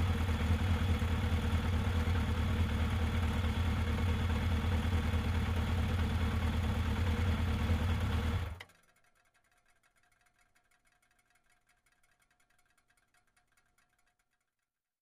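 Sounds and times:
motorcycle starting and revving: 0.0s - 8.6s.

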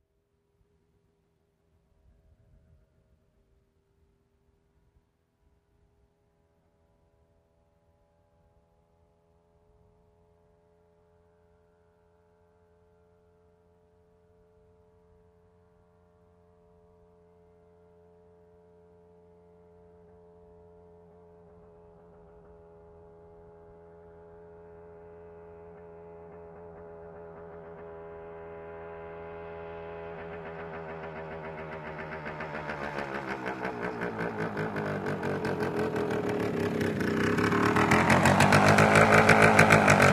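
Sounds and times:
motorcycle approaching and turning off: 19.4s - 40.1s.

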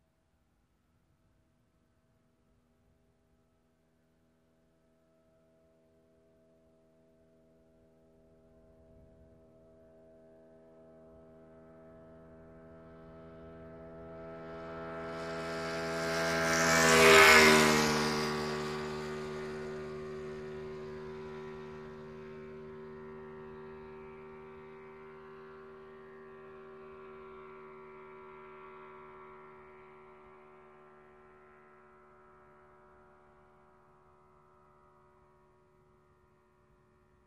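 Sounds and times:
motorcycle passing by quickly: 10.9s - 34.2s.

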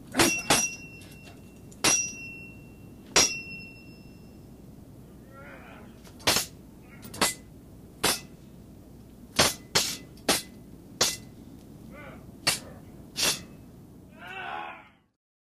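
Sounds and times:
two people sword fighting with cold weapons: 0.1s - 0.9s, 1.8s - 2.4s, 3.2s - 3.6s, 6.2s - 8.4s, 9.4s - 11.3s, 12.4s - 13.6s.

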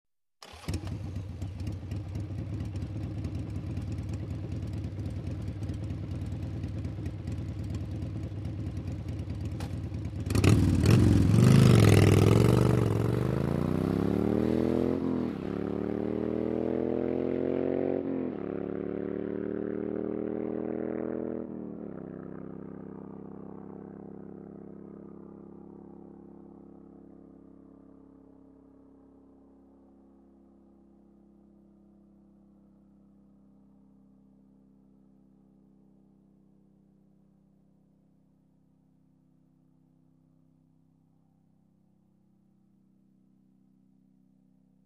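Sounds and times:
motorcycle starting, idling and driving away: 0.4s - 31.7s.

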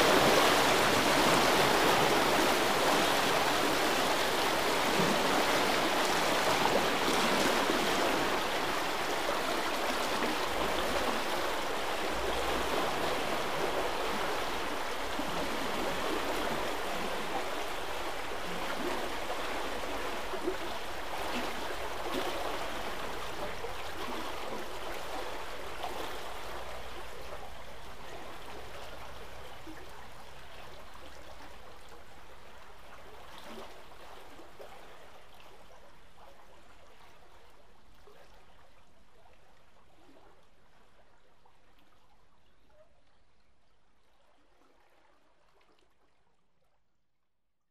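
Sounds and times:
river flowing: 0.0s - 38.2s.

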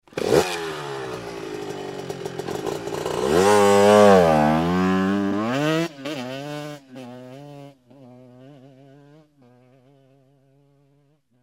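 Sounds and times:
motorcycle starting, idling and driving away: 0.0s - 11.1s.

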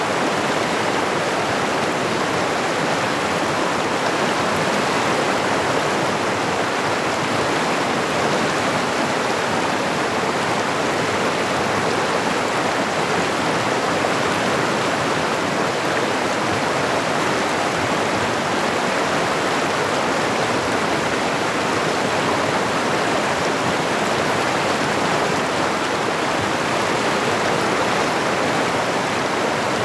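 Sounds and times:
mountain stream flowing: 0.0s - 29.8s.

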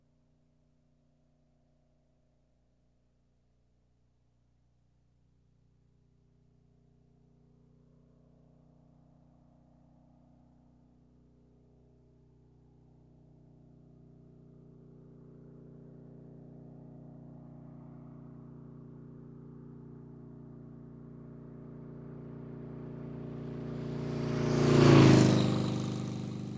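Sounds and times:
motorcycle passing by: 17.6s - 26.5s.

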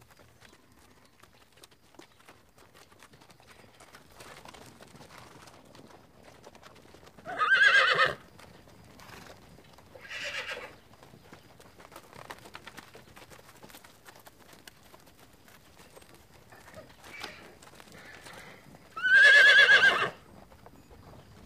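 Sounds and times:
horse whinnying: 7.2s - 8.2s, 10.0s - 10.7s, 19.0s - 20.2s.

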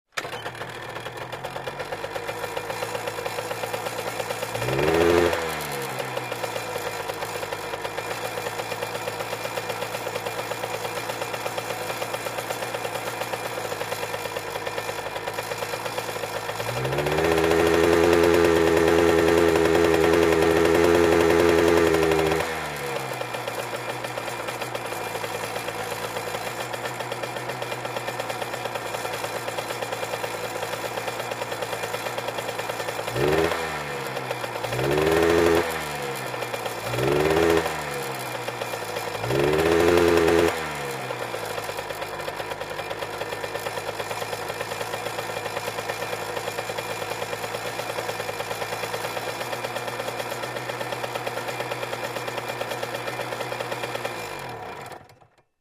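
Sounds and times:
motorcycle starting and revving: 0.1s - 55.4s.

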